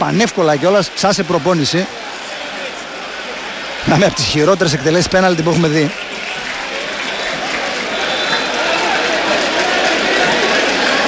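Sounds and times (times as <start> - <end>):
speech: 0.0 - 2.1, 3.8 - 6.0
stadium crowd applauding: 0.0 - 11.0.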